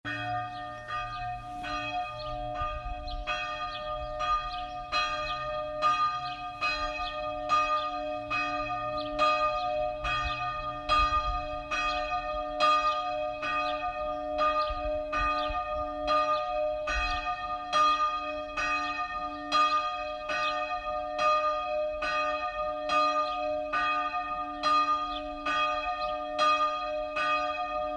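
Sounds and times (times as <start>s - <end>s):
Nikolauskirche church bell ringing: 0.1s - 27.9s.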